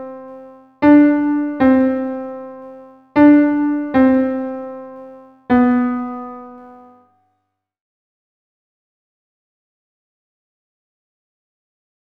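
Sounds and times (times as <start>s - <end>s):
solo piano: 0.0s - 7.1s.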